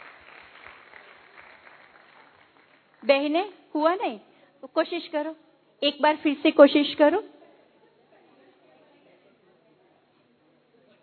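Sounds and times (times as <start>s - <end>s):
audience clapping: 0.0s - 3.4s
speech: 3.0s - 7.4s.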